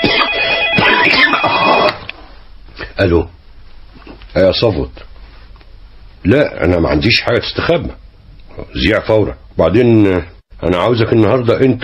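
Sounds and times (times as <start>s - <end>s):
electronic telephone ringing in a radio drama scene: 0.0s - 2.1s
speech: 3.0s - 3.4s, 4.4s - 5.1s, 6.2s - 8.0s, 8.6s - 11.8s.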